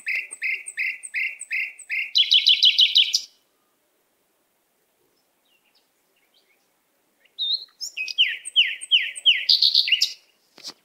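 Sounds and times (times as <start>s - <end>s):
canary singing whistled notes and trills: 0.0s - 3.4s, 7.3s - 10.3s.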